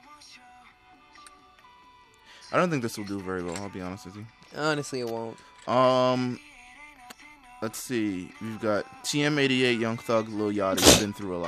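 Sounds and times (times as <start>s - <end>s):
speech: 2.5s - 6.5s, 7.6s - 11.4s
sneeze: 10.7s - 11.2s.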